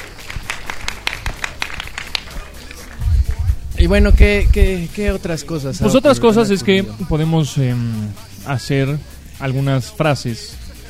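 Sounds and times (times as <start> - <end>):
small audience clapping: 0.0 - 3.4
low rumble: 3.0 - 5.3
speech: 3.8 - 10.6.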